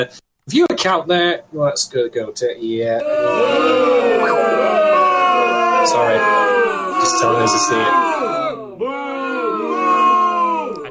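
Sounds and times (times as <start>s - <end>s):
speech: 0.0s - 5.2s, 5.8s - 8.4s
crowd booing sound effect: 3.0s - 10.9s.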